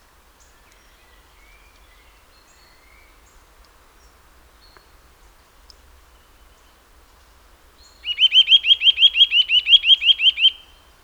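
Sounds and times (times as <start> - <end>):
Eurasian nuthatch rattling whistled notes: 8.0 - 10.8.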